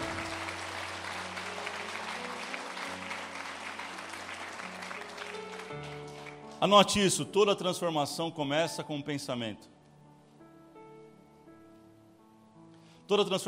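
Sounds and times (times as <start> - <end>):
crowd applause: 0.0 - 6.6
speech: 6.6 - 9.7, 13.1 - 13.4.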